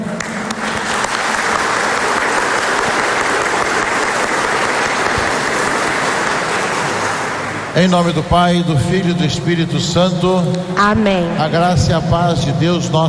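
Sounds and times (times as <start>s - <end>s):
large crowd applauding: 0.0s - 8.2s
speech: 7.8s - 13.0s.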